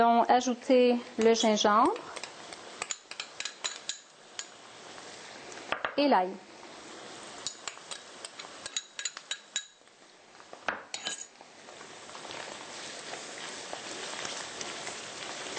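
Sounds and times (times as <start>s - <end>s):
speech: 0.0s - 2.2s, 6.0s - 6.5s
tofu roasting in a pan: 0.0s - 15.5s
utensil clinking against a pan: 2.2s - 4.5s, 7.4s - 9.8s.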